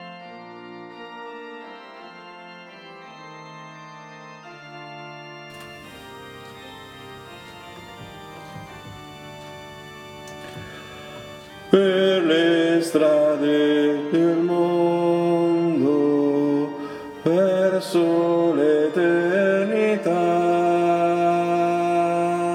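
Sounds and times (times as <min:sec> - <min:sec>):
contralto voices singing: 0:07.2 - 0:22.5.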